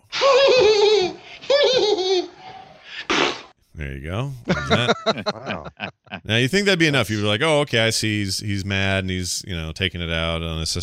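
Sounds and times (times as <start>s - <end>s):
laughter: 0.3s - 2.4s, 4.5s - 6.3s
comic fart sound effect: 3.1s - 3.5s
speech: 4.0s - 10.8s.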